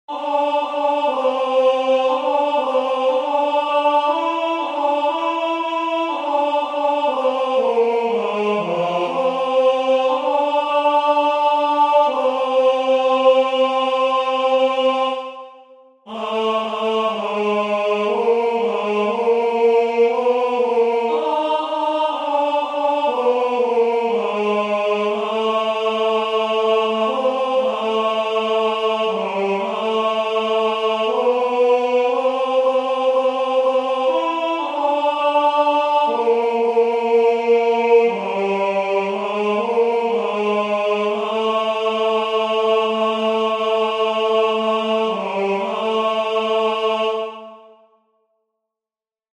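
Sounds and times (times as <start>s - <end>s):
tenor singing: 0.1s - 47.7s.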